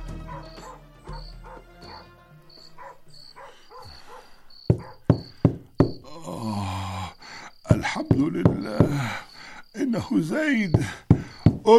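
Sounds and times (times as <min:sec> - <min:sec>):
knocking on a door: 0:04.7 - 0:06.1, 0:07.7 - 0:09.1, 0:10.7 - 0:11.7
speech: 0:08.2 - 0:09.2, 0:09.9 - 0:11.1.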